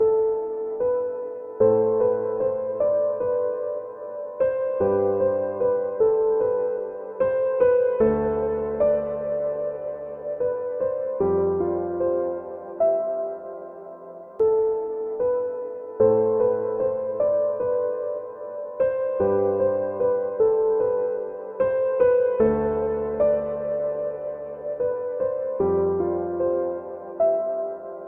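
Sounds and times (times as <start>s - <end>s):
piano: 0.0s - 28.0s.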